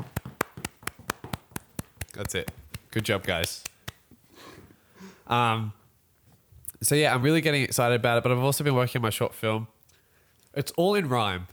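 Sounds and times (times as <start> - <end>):
people clapping along to a beat: 0.0 - 4.1
speech: 2.2 - 3.7, 5.3 - 5.8, 6.8 - 9.8, 10.6 - 11.5.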